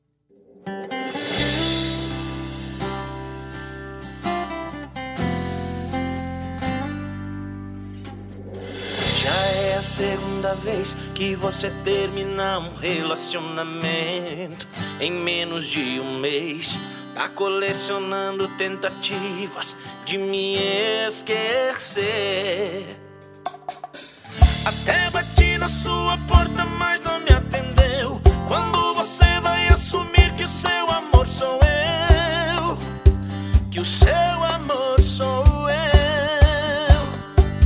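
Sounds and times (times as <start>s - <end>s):
sertanejo sofrencia song: 0.4s - 37.6s.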